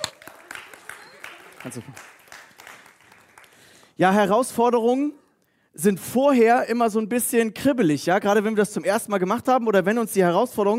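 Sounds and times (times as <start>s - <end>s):
audience applause: 0.0s - 3.9s
speech: 1.6s - 2.2s, 4.0s - 5.2s, 5.8s - 10.7s.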